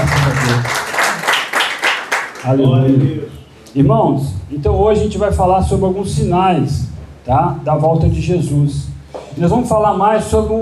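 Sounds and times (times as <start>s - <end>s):
audience applause: 0.0s - 2.6s
speech: 2.4s - 10.6s.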